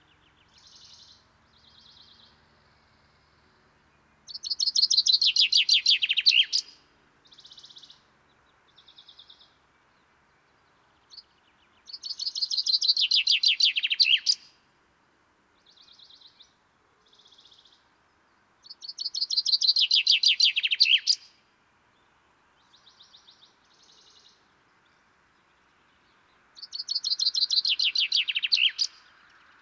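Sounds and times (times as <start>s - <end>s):
common chaffinch Fringilla coelebs singing descending trilled phrases: 4.3s - 6.8s, 11.8s - 14.5s, 18.6s - 21.3s, 26.6s - 29.1s.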